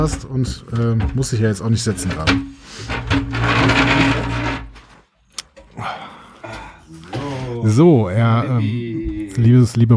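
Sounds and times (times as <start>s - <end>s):
speech: 0.0s - 4.2s, 7.6s - 9.9s
faint bumps: 0.0s - 5.1s
flipchart stand dragged across carpet: 1.7s - 5.0s.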